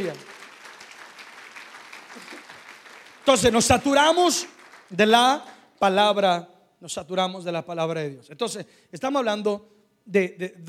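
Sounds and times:
speech: 0:00.0 - 0:00.3, 0:03.2 - 0:10.6
audience applauding loudly: 0:00.0 - 0:05.6.

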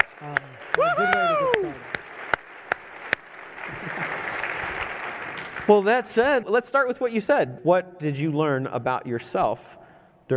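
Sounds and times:
audience applause: 0:00.0 - 0:06.3
speech: 0:00.2 - 0:01.0, 0:05.7 - 0:10.3.

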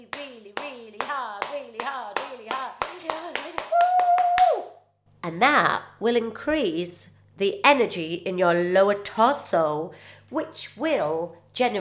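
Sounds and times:
acupuncture clap with palms pressed together: 0:00.1 - 0:04.7
speech: 0:05.3 - 0:11.7.

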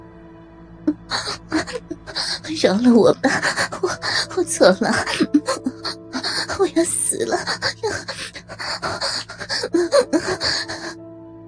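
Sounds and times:
heavy panting: 0:01.0 - 0:11.0
speech: 0:02.5 - 0:03.7, 0:04.4 - 0:05.4.

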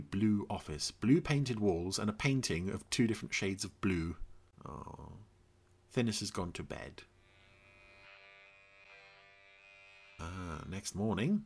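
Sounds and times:
speech: 0:00.0 - 0:05.3, 0:05.9 - 0:07.1, 0:10.2 - 0:11.4
electric razor buzzing during a morning shave: 0:07.2 - 0:10.3.

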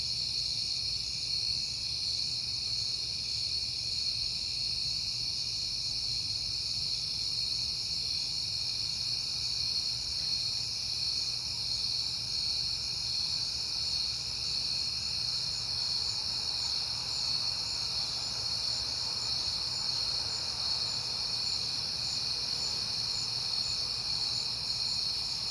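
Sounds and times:
crickets chirping: 0:00.0 - 0:25.4.

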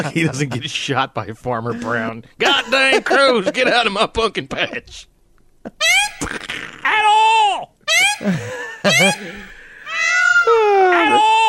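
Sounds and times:
laughter: 0:00.0 - 0:00.8, 0:01.7 - 0:04.8, 0:08.0 - 0:11.4
speech: 0:00.0 - 0:09.5
peacock calling: 0:05.8 - 0:07.0, 0:08.9 - 0:11.4.

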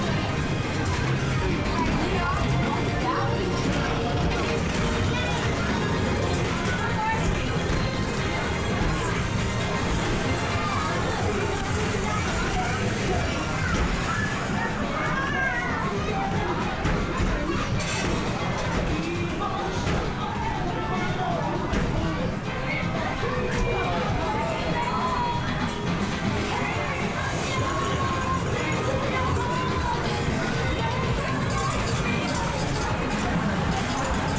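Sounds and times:
lively crowd chatter in an English seaside town amusement arcade: 0:00.0 - 0:34.3
whirring arcade machines: 0:00.0 - 0:34.3
bright clinks and chimes: 0:17.8 - 0:18.8, 0:31.4 - 0:34.3.

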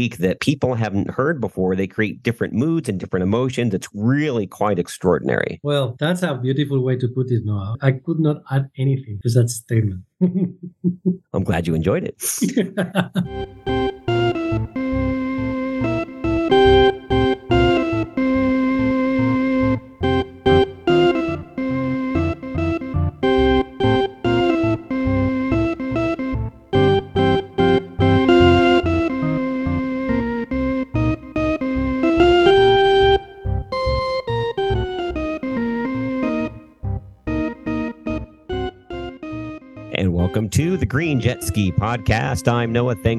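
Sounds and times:
speech: 0:00.0 - 0:13.8, 0:40.9 - 0:43.1
laughter: 0:10.2 - 0:10.6, 0:12.2 - 0:13.4
organ music: 0:13.3 - 0:43.1.

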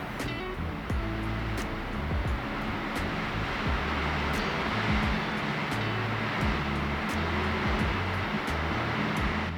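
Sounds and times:
strong wind roaring: 0:00.0 - 0:09.5.

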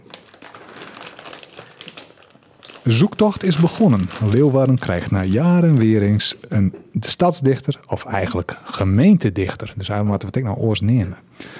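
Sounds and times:
candy wrapper crinkling: 0:00.0 - 0:05.3
speech: 0:02.9 - 0:11.5.

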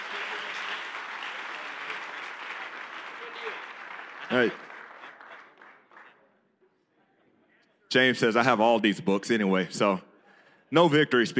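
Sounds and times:
audience applause: 0:00.0 - 0:06.2
speech: 0:04.3 - 0:04.6, 0:07.9 - 0:10.1, 0:10.7 - 0:11.3.

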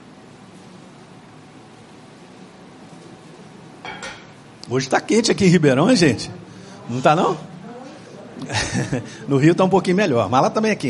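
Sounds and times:
glass handling: 0:03.8 - 0:04.4
speech: 0:04.7 - 0:07.5, 0:08.4 - 0:10.8
laughter: 0:08.4 - 0:09.3.

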